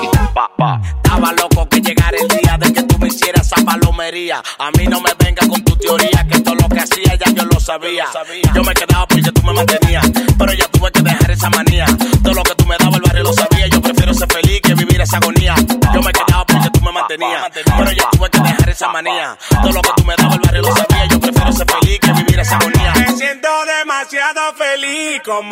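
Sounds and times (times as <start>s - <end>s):
Latin pop music snippets: 0.0s - 25.5s.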